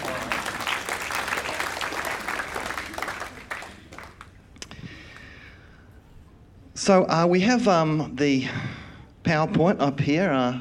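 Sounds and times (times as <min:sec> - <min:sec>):
audience clapping: 0:00.0 - 0:05.3
speech: 0:06.8 - 0:08.7, 0:09.3 - 0:10.5.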